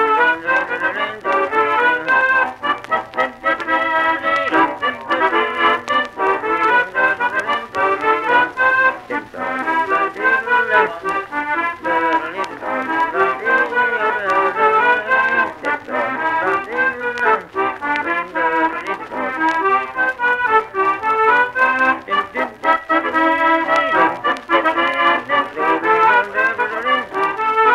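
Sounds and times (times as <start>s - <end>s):
Finnish waltz music: 0.0s - 27.7s.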